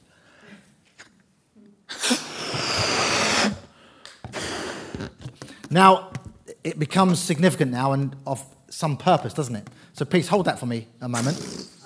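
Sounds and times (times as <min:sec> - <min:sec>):
person blowing air into a balloon: 0:01.9 - 0:05.4, 0:11.2 - 0:11.8
speech: 0:05.7 - 0:11.7.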